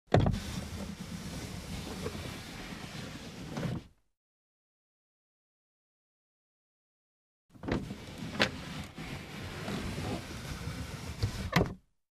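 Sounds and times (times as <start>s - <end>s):
car glass window lowered and raised manually: 0.1s - 4.0s, 7.6s - 11.8s.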